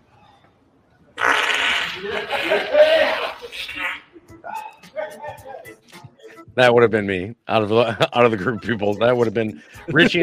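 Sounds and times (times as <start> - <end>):
person farting in a video: 1.2 - 2.7
laughter: 1.8 - 5.2, 9.8 - 10.2
speech: 2.0 - 3.9, 6.6 - 10.2.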